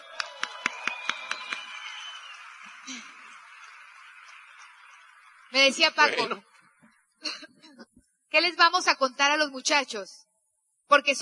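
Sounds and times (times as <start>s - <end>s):
small audience clapping: 0.0s - 6.3s
speech: 2.9s - 3.2s, 5.5s - 6.5s, 8.4s - 10.2s, 10.9s - 11.2s.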